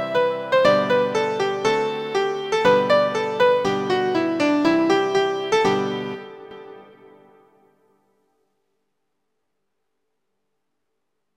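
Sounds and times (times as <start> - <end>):
chords at 120 bpm: 0.0 - 7.7.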